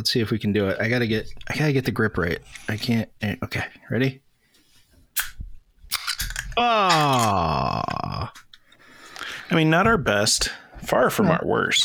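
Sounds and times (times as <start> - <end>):
speech: 0.0 - 4.2, 6.6 - 8.4, 9.5 - 11.8
beer can or bottle cracked open: 5.2 - 8.5.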